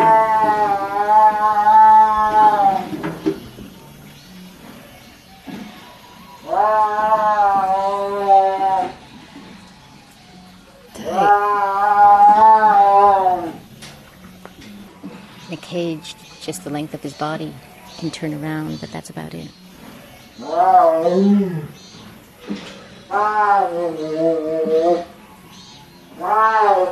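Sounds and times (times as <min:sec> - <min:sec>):
caged tiger yowling: 0:00.0 - 0:02.9, 0:05.8 - 0:09.1, 0:10.8 - 0:13.7, 0:20.4 - 0:21.8, 0:22.7 - 0:25.4, 0:26.0 - 0:26.9
faint hum: 0:00.0 - 0:26.9
speech: 0:16.0 - 0:19.6, 0:20.4 - 0:21.8, 0:23.1 - 0:25.1, 0:26.2 - 0:26.9.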